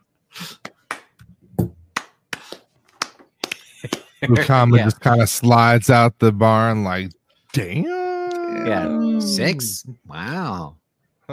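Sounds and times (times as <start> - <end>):
slow clap: 0.6 - 1.3, 1.9 - 4.5
speech: 3.8 - 8.0, 8.6 - 10.8.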